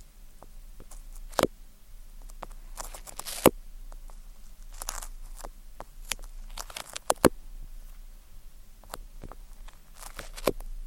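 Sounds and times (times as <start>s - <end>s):
faint low hum: 0.0s - 10.8s
ear cleaning with tweezers sticky clicks and crackles: 2.2s - 7.4s, 8.8s - 10.7s.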